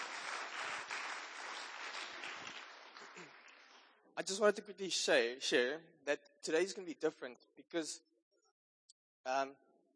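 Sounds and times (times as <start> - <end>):
audience applauding: 0.0 - 4.0
speech: 4.2 - 8.1, 9.2 - 9.6.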